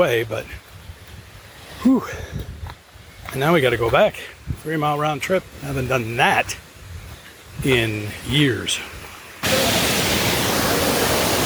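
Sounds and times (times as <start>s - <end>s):
speech: 0.0s - 0.6s, 1.8s - 2.5s, 3.3s - 6.6s, 7.6s - 9.0s
waterfall rushing: 4.9s - 11.4s.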